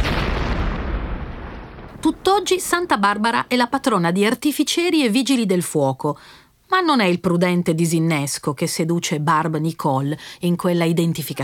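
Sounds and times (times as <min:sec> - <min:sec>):
explosion sound effect: 0:00.0 - 0:02.3
speech: 0:02.0 - 0:11.4.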